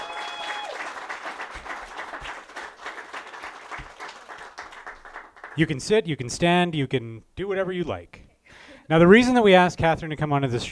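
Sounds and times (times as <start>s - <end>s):
live audience applause: 0.0s - 5.6s
speech: 5.6s - 8.2s, 8.9s - 10.7s.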